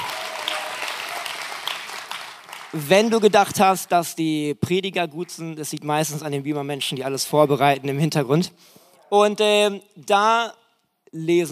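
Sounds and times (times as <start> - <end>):
audience applause: 0.0 - 3.4
speech: 2.7 - 11.5.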